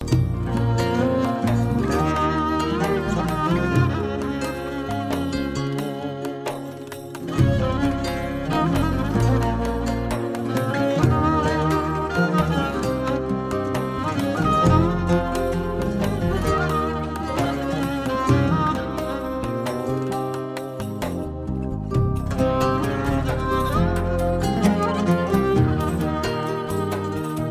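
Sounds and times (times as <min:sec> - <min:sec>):
instrumental music: 0:00.0 - 0:27.4.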